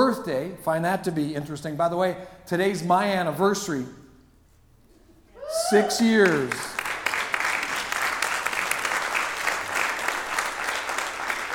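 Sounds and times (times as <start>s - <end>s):
speech: 0.2s - 4.0s, 5.5s - 6.8s
audience applause: 5.5s - 11.5s.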